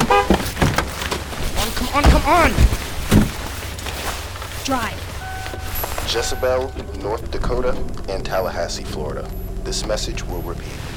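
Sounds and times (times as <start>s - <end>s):
car horn honk from remote unlock: 0.0s - 1.0s, 5.0s - 7.8s
thuds and rustling: 0.0s - 6.5s
speech: 2.0s - 2.8s, 4.7s - 5.0s, 6.1s - 10.9s.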